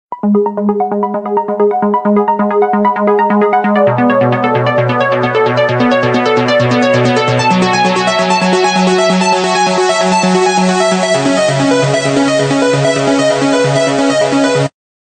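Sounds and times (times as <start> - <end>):
rhythmic ringtone: 0.2 - 14.7.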